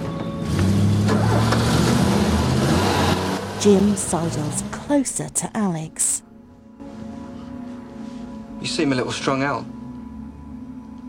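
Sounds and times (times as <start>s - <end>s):
car starting and driving off: 0.4s - 6.2s
speech: 3.6s - 6.3s, 8.6s - 9.8s.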